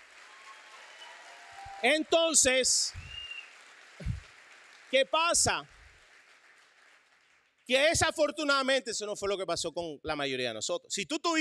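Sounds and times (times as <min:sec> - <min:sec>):
audience applause: 0:00.0 - 0:07.7
speech: 0:01.8 - 0:03.0, 0:04.9 - 0:05.8, 0:07.7 - 0:11.3.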